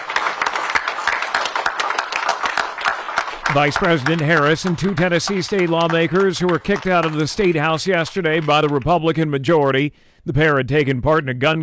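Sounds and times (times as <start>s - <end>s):
round of applause from a crowd: 0.0s - 9.2s
speech: 3.6s - 11.6s.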